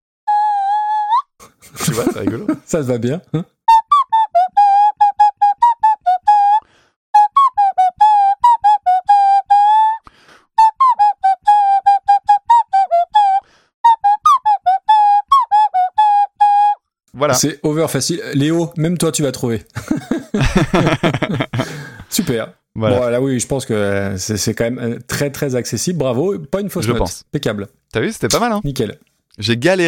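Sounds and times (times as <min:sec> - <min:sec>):
nose flute playing a simple tune: 0:00.3 - 0:01.3, 0:03.7 - 0:06.6, 0:07.2 - 0:10.0, 0:10.6 - 0:16.8
laughter: 0:01.4 - 0:02.7, 0:19.8 - 0:22.2
speech: 0:01.7 - 0:03.5, 0:17.2 - 0:21.4, 0:22.3 - 0:29.8.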